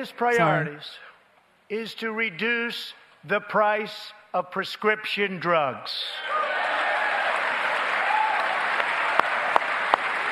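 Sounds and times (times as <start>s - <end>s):
speech: 0.0s - 1.1s, 1.7s - 6.4s
applause: 6.3s - 10.3s.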